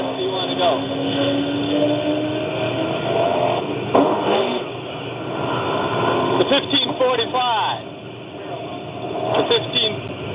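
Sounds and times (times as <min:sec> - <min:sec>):
open-class off-road buggy engines roaring off the start line at the Parker 425: 0:00.0 - 0:10.3.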